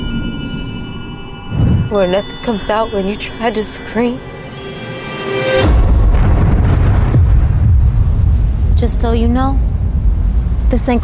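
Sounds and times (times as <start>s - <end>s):
steady tonal hum: 0.0s - 5.4s
speech: 1.9s - 4.3s, 8.9s - 9.7s, 10.7s - 11.0s
gunshot blast with booming rumble: 5.9s - 8.9s.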